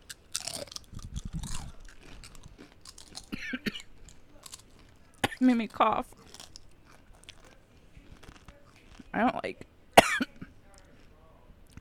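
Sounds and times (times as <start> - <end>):
crunching a spicy tortilla chip: 0.0 - 9.2
speech: 5.4 - 6.2, 9.2 - 9.7.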